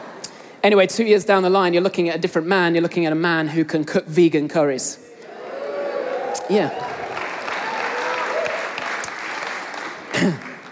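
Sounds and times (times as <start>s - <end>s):
speech: 0.6s - 5.1s, 6.5s - 7.0s
audience applause: 5.5s - 10.7s.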